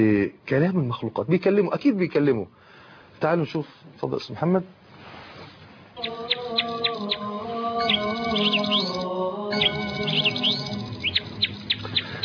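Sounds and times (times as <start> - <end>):
speech: 0.0 - 4.8
sparrows chirping: 6.0 - 12.2
steady tonal sound: 6.0 - 12.2.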